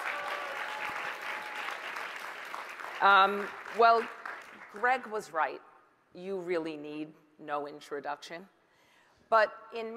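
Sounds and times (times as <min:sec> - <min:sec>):
audience applause: 0:00.0 - 0:04.8
speech: 0:03.0 - 0:08.6, 0:09.3 - 0:09.9.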